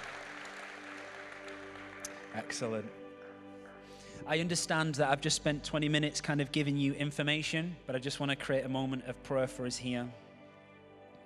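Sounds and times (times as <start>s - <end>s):
audience applause: 0.0s - 2.8s
speech: 2.4s - 3.0s, 4.2s - 10.2s.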